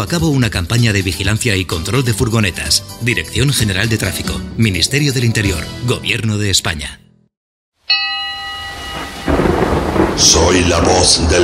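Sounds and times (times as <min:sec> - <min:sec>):
speech: 0:00.0 - 0:07.1, 0:10.2 - 0:11.4
thunder of a storm: 0:08.6 - 0:11.4.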